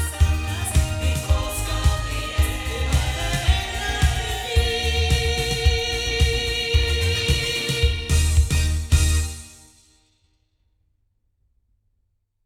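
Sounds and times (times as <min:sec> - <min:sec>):
loudspeakers: 0:00.0 - 0:09.4.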